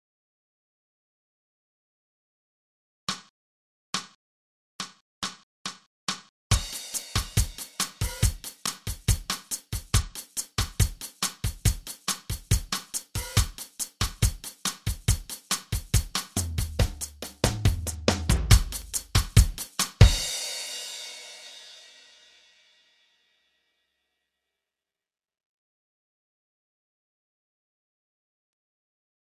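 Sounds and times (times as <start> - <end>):
drum track: 3.1 - 3.3, 4.0 - 4.2, 4.8 - 22.4.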